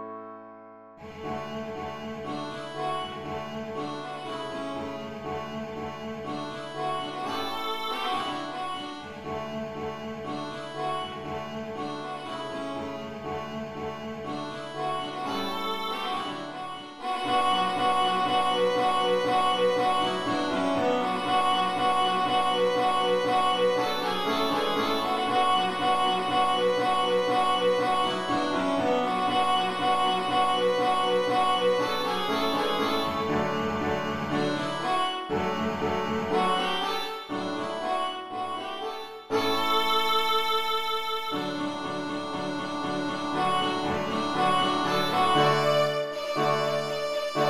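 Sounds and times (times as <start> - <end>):
violin: 1.0 - 47.4.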